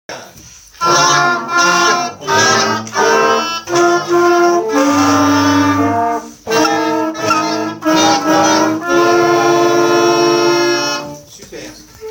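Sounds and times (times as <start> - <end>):
orchestra: 0.7 - 12.1.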